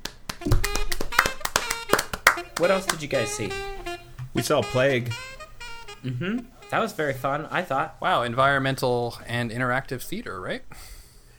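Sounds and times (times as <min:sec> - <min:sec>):
medium-sized applause: 0:00.0 - 0:03.1
speech: 0:02.6 - 0:03.8, 0:04.4 - 0:05.3, 0:06.0 - 0:11.3.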